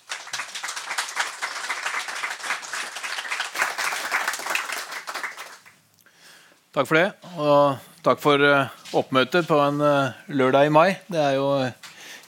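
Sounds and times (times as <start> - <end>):
audience applause: 0.0 - 5.8
speech: 6.8 - 11.8.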